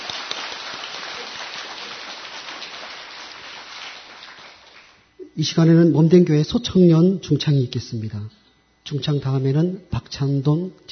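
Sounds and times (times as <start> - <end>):
applause in church: 0.0 - 5.1
speech: 5.4 - 10.8.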